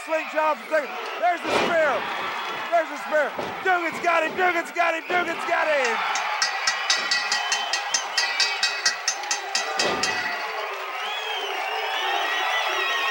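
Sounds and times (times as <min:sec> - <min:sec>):
large crowd cheering: 0:00.0 - 0:13.1
speech: 0:00.1 - 0:06.2
rhythmic clapping or stomping: 0:02.1 - 0:11.2
high whistles: 0:04.9 - 0:13.1.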